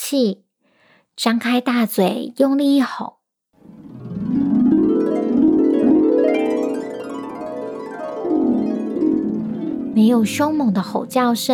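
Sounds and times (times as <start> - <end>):
speech: 0.1 - 0.4, 1.2 - 3.2, 10.0 - 11.5
harp strum: 3.6 - 11.5.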